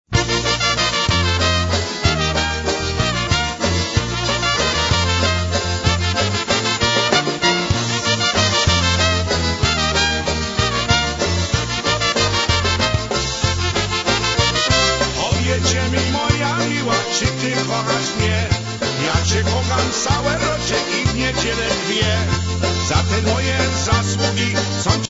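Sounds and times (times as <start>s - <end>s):
Polish oberek folk dance music: 0.0s - 25.0s.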